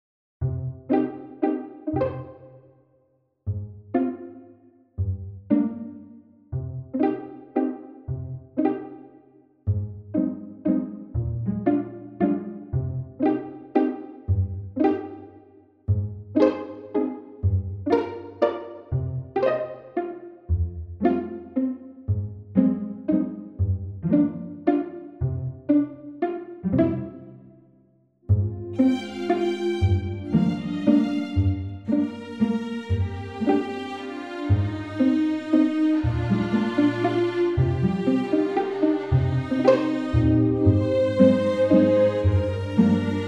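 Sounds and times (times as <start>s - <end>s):
waltz music: 0.7s - 2.5s, 3.6s - 4.5s, 5.4s - 6.2s, 6.8s - 9.1s, 9.8s - 15.3s, 15.9s - 27.4s, 28.3s - 43.2s.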